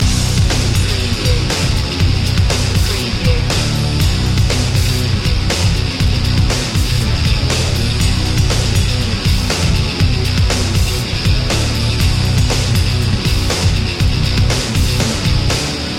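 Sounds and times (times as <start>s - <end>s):
music loop: 0.0s - 15.9s.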